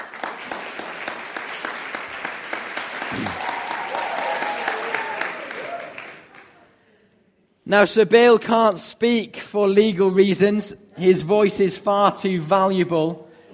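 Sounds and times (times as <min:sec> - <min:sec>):
audience applause: 0:00.0 - 0:06.6
speech: 0:03.1 - 0:03.5, 0:07.7 - 0:13.2.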